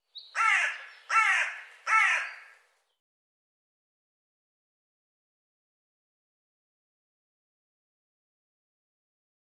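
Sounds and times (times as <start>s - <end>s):
bird cawing: 0.3s - 2.7s.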